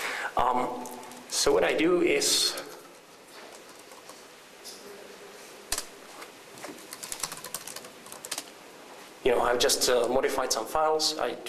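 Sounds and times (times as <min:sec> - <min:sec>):
speech: 0:00.4 - 0:02.7, 0:09.3 - 0:11.4
computer keyboard typing a commit message: 0:03.5 - 0:04.3, 0:06.8 - 0:08.5.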